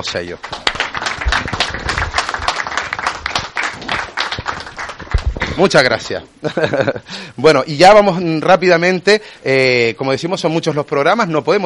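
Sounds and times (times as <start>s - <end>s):
speech: 0.0s - 0.6s, 5.6s - 11.6s
audience applause: 0.4s - 5.8s
laughter: 6.4s - 7.1s.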